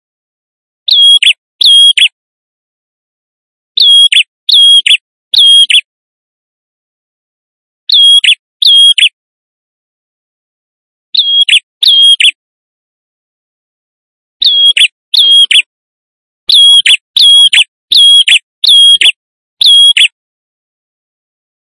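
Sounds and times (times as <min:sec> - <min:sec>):
male prinia in vigorous song used as a lure: 0:00.9 - 0:02.2, 0:03.8 - 0:05.9, 0:07.9 - 0:09.2, 0:11.2 - 0:12.4, 0:14.4 - 0:15.7, 0:16.5 - 0:20.2.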